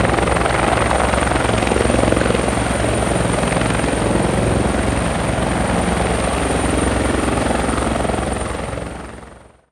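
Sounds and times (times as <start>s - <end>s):
helicopter landing: 0.0s - 9.5s.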